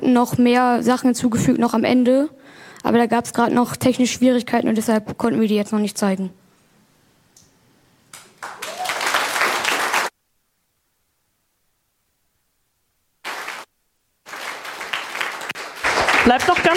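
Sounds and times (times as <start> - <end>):
speech: 0.0 - 6.4
audience applause: 8.2 - 10.1, 13.2 - 13.7, 14.3 - 16.7.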